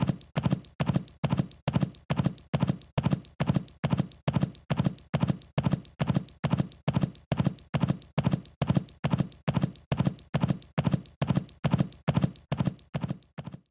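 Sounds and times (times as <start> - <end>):
horse running, hoofbeats galloping: 0.0 - 13.6.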